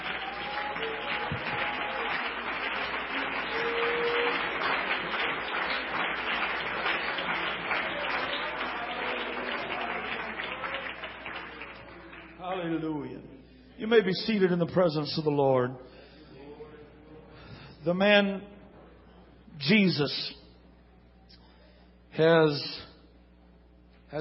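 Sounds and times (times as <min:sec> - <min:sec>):
audience clapping hands: 0:00.0 - 0:12.8
speech: 0:13.9 - 0:15.9, 0:17.8 - 0:18.6, 0:19.6 - 0:20.4, 0:22.2 - 0:22.8.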